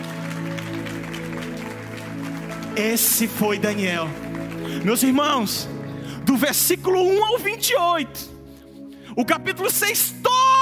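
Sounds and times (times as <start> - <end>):
audience applause: 0.0 - 7.0
speech: 2.8 - 8.3, 9.2 - 10.4.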